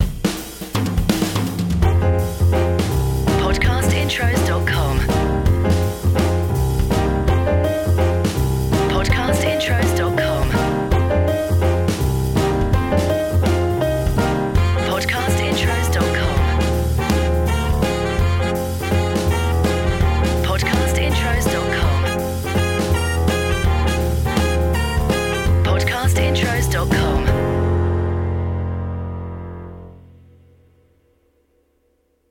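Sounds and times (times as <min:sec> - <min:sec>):
blues music: 0:00.0 - 0:30.0.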